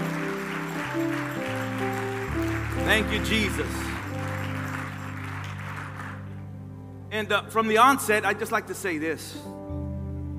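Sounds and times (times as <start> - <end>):
congregation applauding to welcome guests in church: 0.0 - 6.6
speech: 2.9 - 3.9, 7.1 - 9.6.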